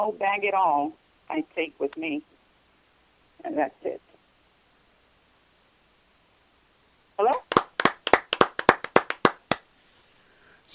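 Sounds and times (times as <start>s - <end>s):
speech: 0.0s - 2.3s, 3.4s - 4.1s, 7.2s - 7.5s
small group of people clapping along a call: 7.2s - 9.7s.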